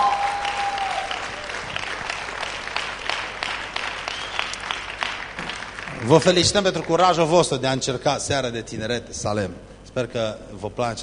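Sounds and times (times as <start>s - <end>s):
audience applauding to welcome newcomers: 0.0s - 7.3s
speech: 6.0s - 11.0s.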